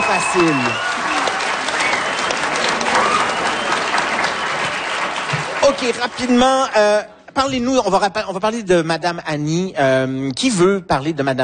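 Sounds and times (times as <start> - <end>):
audience applause: 0.0 - 6.8
speech: 0.1 - 1.0, 5.7 - 11.4.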